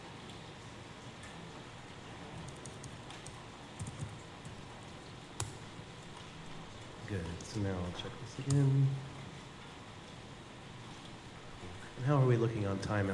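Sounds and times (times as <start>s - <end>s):
low hiss: 0.0s - 13.1s
keyboard typing of network configuration commands on a computer: 2.3s - 4.7s
speech: 7.1s - 9.1s, 12.0s - 13.1s.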